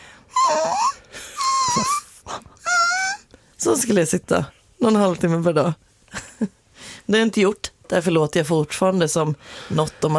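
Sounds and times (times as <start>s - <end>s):
human voice imitating a whining puppy: 0.3s - 3.3s
speech: 3.6s - 10.1s.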